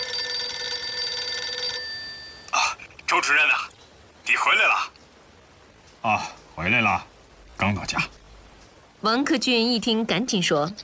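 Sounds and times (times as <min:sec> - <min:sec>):
telephone ringing with trilling bell tone: 0:00.0 - 0:02.6
speech: 0:03.1 - 0:03.7, 0:04.3 - 0:05.0, 0:06.0 - 0:08.2, 0:09.0 - 0:10.8.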